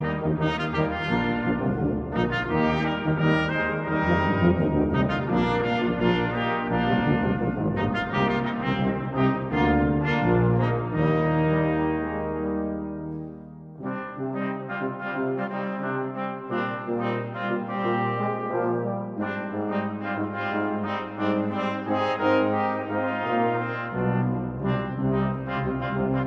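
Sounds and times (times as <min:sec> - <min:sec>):
brass ensemble playing: 0:00.0 - 0:26.2.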